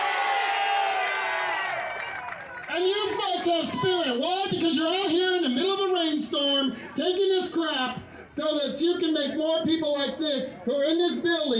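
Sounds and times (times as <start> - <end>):
crowd cheering at an outdoor rally in a rainstorm: 0.0 - 6.2
speech: 2.8 - 11.5.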